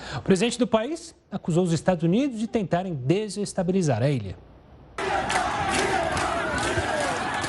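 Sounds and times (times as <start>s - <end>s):
speech: 0.2s - 4.5s
large protest crowd shouting slogans: 5.0s - 7.4s.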